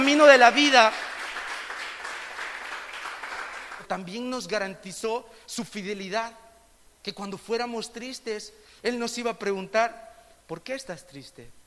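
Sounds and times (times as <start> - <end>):
audience applause: 0.0 - 3.8
speech: 0.2 - 1.1, 3.9 - 6.4, 7.0 - 11.6.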